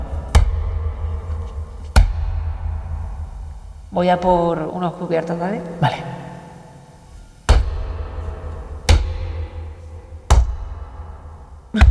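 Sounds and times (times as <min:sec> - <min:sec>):
heavy dull thuds of hopping on one foot: 0:00.0 - 0:04.4, 0:07.4 - 0:11.8
speech: 0:04.0 - 0:06.2.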